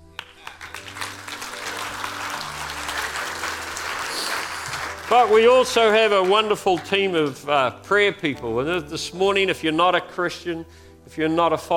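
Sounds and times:
audience clapping: 0:00.0 - 0:07.6
speech: 0:05.1 - 0:11.7.

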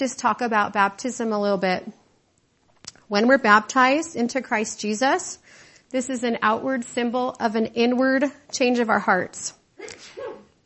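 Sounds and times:
speech: 0:00.0 - 0:02.0, 0:03.1 - 0:10.4
sneeze: 0:09.8 - 0:10.6.

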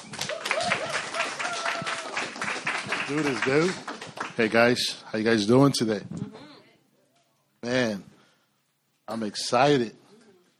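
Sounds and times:
audience at a church gathering applauding a guest speaker: 0:00.0 - 0:05.0
speech: 0:03.1 - 0:06.2, 0:09.2 - 0:10.0.

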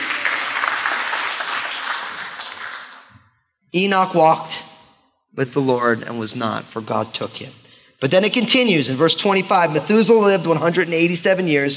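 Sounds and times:
audience clapping in a church: 0:00.0 - 0:03.2
speech: 0:03.7 - 0:04.6, 0:05.3 - 0:11.7.

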